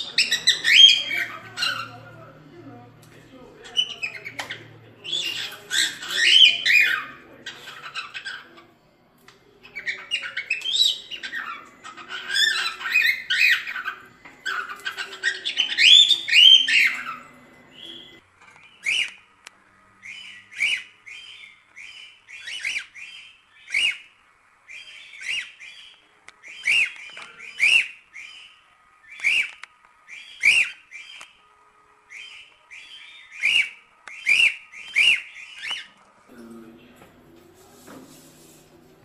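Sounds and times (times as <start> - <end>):
cockatiels whistling and chattering: 0.0 - 2.2, 3.7 - 8.6, 9.6 - 18.2, 18.8 - 19.2, 20.0 - 24.1, 24.7 - 31.2, 32.1 - 36.0.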